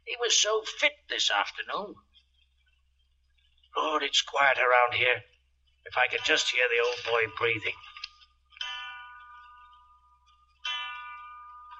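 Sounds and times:
speech: 0.2 - 2.1, 3.8 - 5.3, 5.9 - 7.9
clock chiming three o'clock: 5.9 - 11.7.

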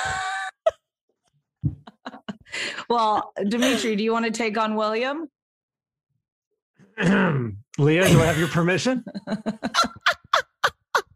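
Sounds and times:
laughter: 1.8 - 4.0, 7.9 - 11.1
speech: 2.9 - 5.4, 7.0 - 10.1
person clearing throat: 7.0 - 8.5.

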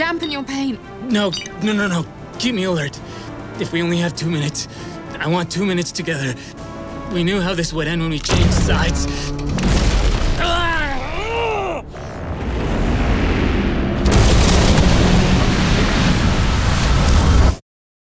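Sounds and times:
speech: 0.2 - 9.5
spaceship crash impact: 9.5 - 10.4, 11.9 - 17.5.

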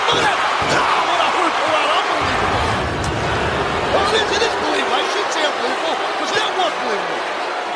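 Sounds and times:
wrestling arena crowd cheering: 0.0 - 7.7.

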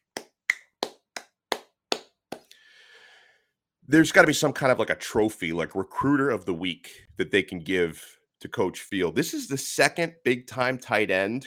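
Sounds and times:
single person clapping: 0.0 - 2.5
speech: 3.9 - 11.4.

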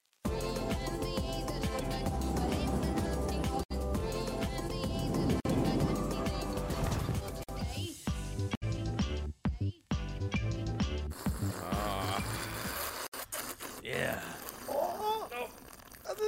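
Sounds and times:
music: 0.2 - 12.7
long loud slurp from a mug: 11.1 - 16.2
people talking: 13.8 - 15.5, 16.1 - 16.2.

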